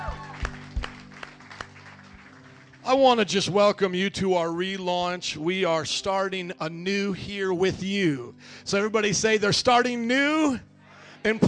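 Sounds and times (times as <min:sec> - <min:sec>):
scattered hand claps from a gathered crowd: 0:00.1 - 0:03.0
speech: 0:02.9 - 0:11.4.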